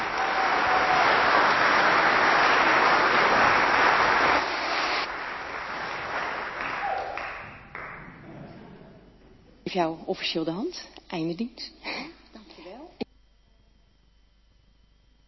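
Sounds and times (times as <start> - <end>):
audience applause: 0.0 - 8.4
speech: 9.7 - 12.0.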